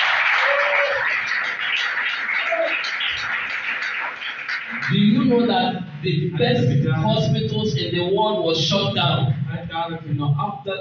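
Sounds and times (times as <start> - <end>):
audience clapping hands: 0.0 - 5.8
speech: 4.9 - 10.7.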